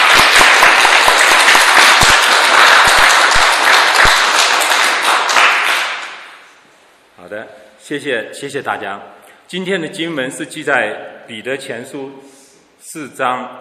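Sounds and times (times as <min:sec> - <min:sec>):
encouraging audience applause: 0:00.0 - 0:06.4
speech: 0:07.9 - 0:13.5.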